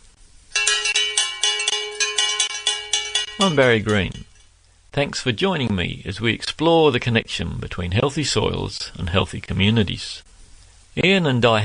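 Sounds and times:
bell ringing to open an English farmers market: 0.5s - 4.5s
speech: 3.4s - 4.3s, 4.9s - 10.3s, 11.0s - 11.6s.

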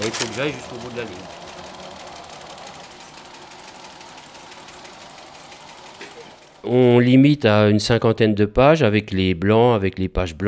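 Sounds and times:
speech: 0.0s - 1.6s, 6.6s - 10.4s
typesetting machine matrices dropping while typing: 0.0s - 7.0s.

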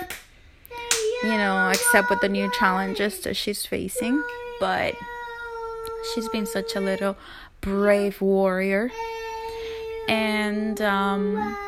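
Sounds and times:
child clapping hands: 0.0s - 2.0s
speech: 1.2s - 5.2s, 6.0s - 9.2s, 10.1s - 11.6s.

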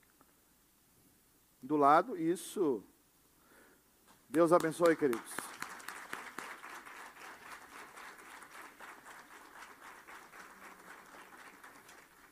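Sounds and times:
speech: 1.6s - 2.9s, 4.3s - 5.5s
faint audience clapping: 4.3s - 12.3s.

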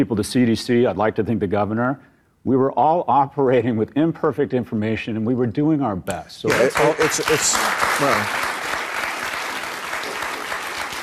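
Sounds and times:
speech: 0.0s - 8.5s
crowd clapping: 6.5s - 11.0s.

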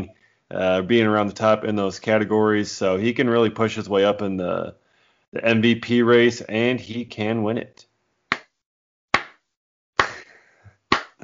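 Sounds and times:
speech: 0.0s - 7.9s
slow hand clapping: 8.3s - 8.6s, 10.0s - 11.2s.

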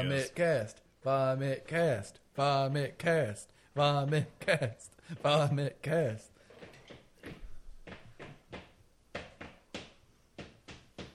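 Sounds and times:
speech: 0.0s - 6.3s
foot stomping on the floor: 6.6s - 11.1s.

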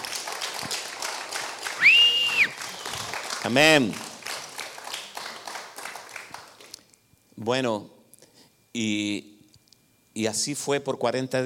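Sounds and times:
audience applause: 0.0s - 6.6s
speech: 3.4s - 4.1s, 7.4s - 8.0s, 8.7s - 9.3s, 10.2s - 11.4s.

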